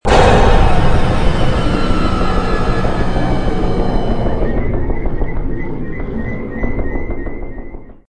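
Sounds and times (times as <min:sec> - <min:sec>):
intro music: 0:00.1 - 0:08.0.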